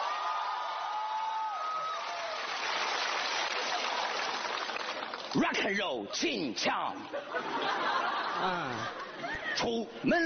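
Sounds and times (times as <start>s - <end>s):
audience applause and cheering: 0.0s - 5.5s
speech: 5.3s - 10.2s
laughter: 7.0s - 9.7s.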